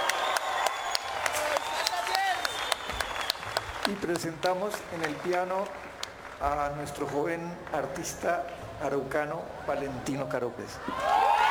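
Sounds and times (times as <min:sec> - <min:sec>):
audience applause: 0:00.0 - 0:07.1
speech: 0:03.9 - 0:11.2.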